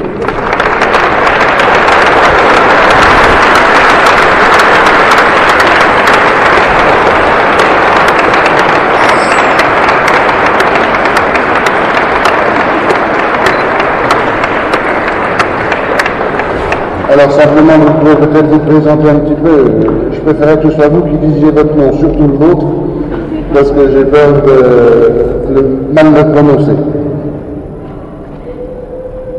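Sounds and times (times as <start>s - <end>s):
crowd clapping: 0.0s - 25.6s
speech: 17.2s - 22.8s, 23.5s - 27.0s.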